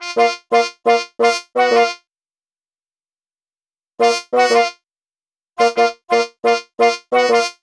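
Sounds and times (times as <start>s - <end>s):
horns: 0.0s - 2.0s, 4.0s - 4.8s, 5.6s - 7.6s.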